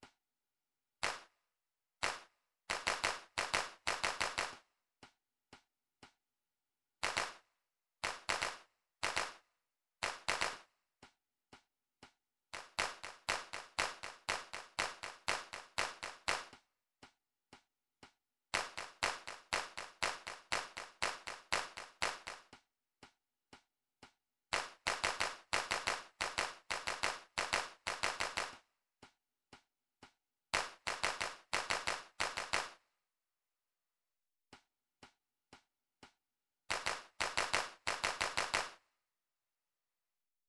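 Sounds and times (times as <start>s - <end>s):
hand clap: 1.0s - 1.3s, 2.0s - 4.6s, 7.0s - 7.4s, 8.0s - 9.4s, 10.0s - 10.7s, 12.5s - 16.6s, 18.5s - 22.6s, 24.5s - 28.6s, 30.5s - 32.8s, 36.7s - 38.8s.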